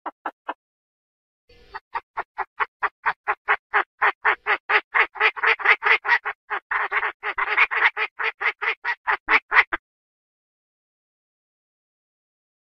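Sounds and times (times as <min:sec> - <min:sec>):
Chinese francolin harsh calls: 0:01.5 - 0:09.8.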